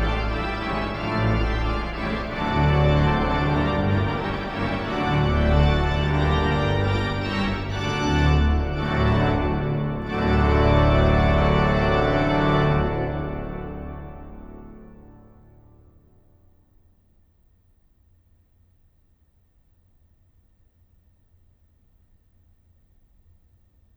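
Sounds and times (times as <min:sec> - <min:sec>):
organ improvisation of a Victorian sonata: 0:00.0 - 0:14.8.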